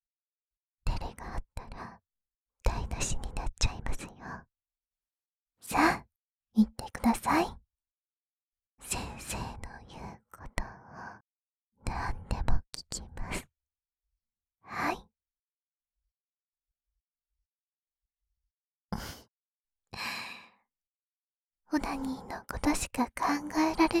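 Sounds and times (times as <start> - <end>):
person whispering: 0.9 - 2.0, 2.7 - 4.4, 6.6 - 7.6, 8.8 - 11.1, 11.9 - 13.5, 14.7 - 15.1, 21.7 - 23.9.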